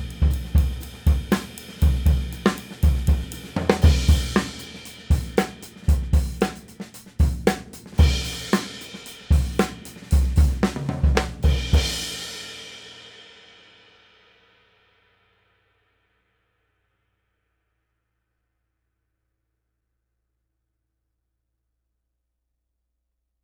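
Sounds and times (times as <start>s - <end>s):
20 inch cymbal: 0.0s - 16.4s.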